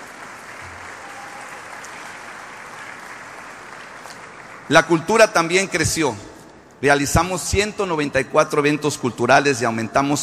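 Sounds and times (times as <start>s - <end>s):
audience applause: 0.0s - 4.8s
speech: 4.7s - 10.2s.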